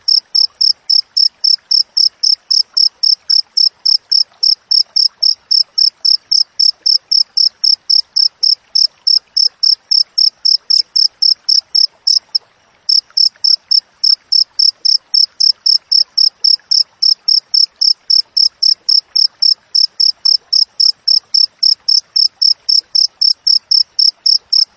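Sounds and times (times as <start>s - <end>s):
cricket chirps: 0.1s - 24.7s.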